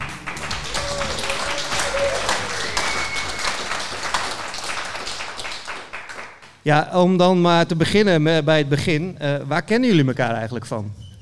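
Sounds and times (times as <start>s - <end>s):
audience applause: 0.0s - 6.5s
speech: 6.6s - 11.0s.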